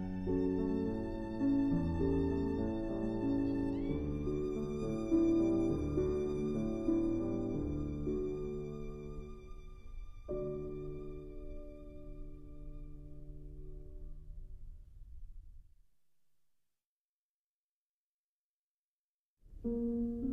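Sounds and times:
violin: 0.0 - 14.1
piano: 0.0 - 16.1, 19.4 - 20.3.

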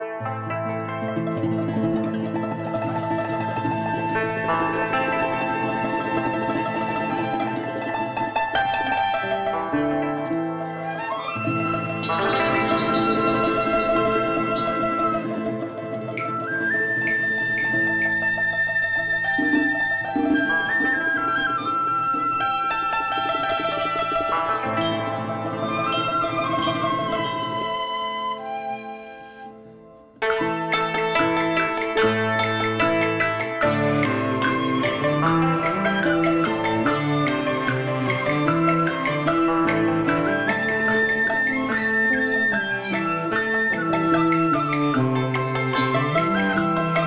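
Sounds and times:
traditional Chinese music: 0.0 - 47.0.

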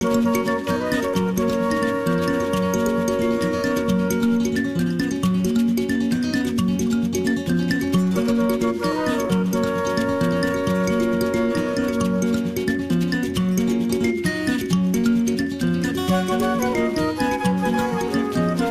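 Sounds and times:
traditional Luganda music: 0.0 - 14.6, 15.7 - 18.6.

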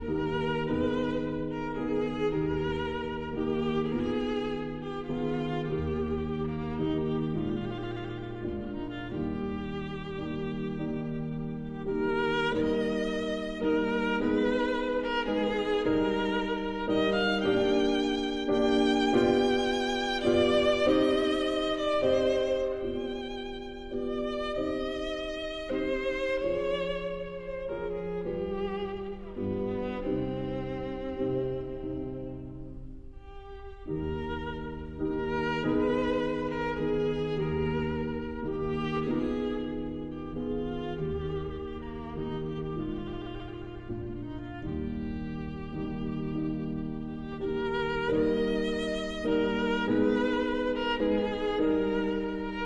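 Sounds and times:
violin and piano: 0.0 - 52.6.

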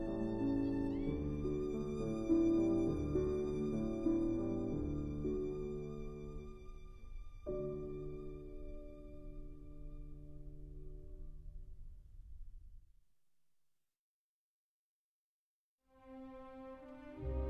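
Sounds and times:
violin: 0.0 - 10.7, 15.9 - 17.4
piano: 0.0 - 12.8, 15.9 - 17.4.

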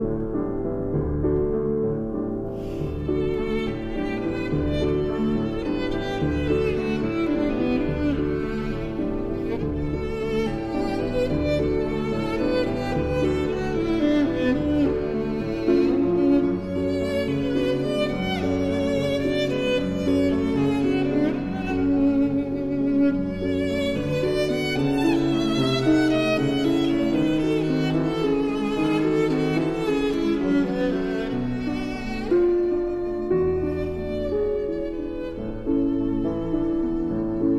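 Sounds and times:
piano: 0.0 - 37.5
violin: 0.0 - 37.5.

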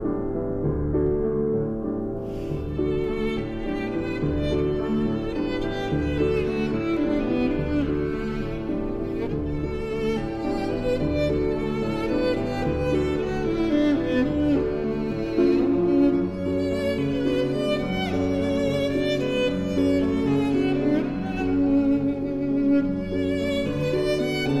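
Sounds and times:
piano: 0.0 - 24.5
violin: 0.0 - 24.5.

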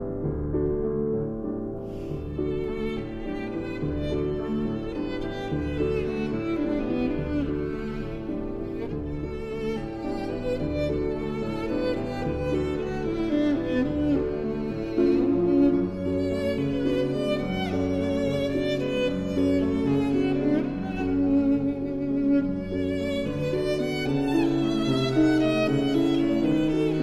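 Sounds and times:
piano: 0.0 - 27.0
violin: 0.0 - 27.0.

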